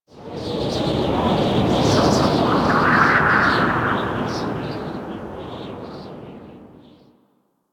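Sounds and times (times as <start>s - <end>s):
exterior wind gust: 1.4s - 6.2s.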